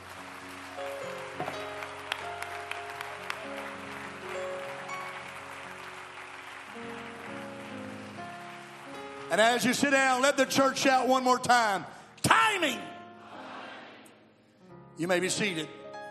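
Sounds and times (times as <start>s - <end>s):
audience clapping hands: 0.0s - 11.5s
speech: 9.3s - 12.0s, 12.6s - 12.9s, 15.0s - 15.8s.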